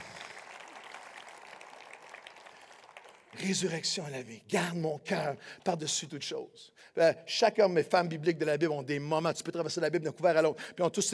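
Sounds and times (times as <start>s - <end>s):
audience applauding: 0.0s - 3.8s
speech: 3.3s - 11.1s.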